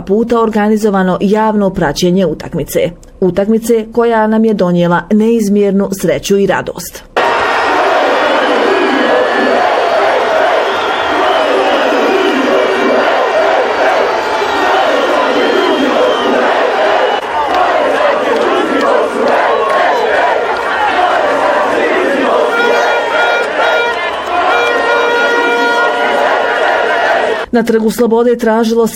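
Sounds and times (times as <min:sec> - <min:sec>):
speech: 0:00.0 - 0:07.2, 0:27.6 - 0:28.9
football fans singing and celebrating on Freedom Square in Tuzla: 0:07.2 - 0:27.5.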